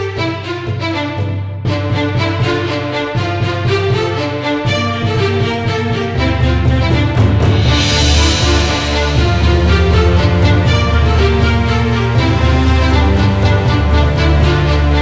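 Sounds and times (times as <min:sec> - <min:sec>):
standard musical ending: 0:00.2 - 0:15.0.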